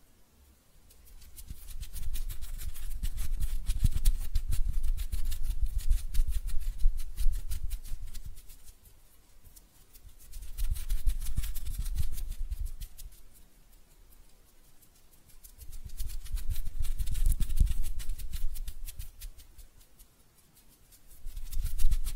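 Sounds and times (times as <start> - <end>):
hands rubbing and scratching: 0.5 - 22.1.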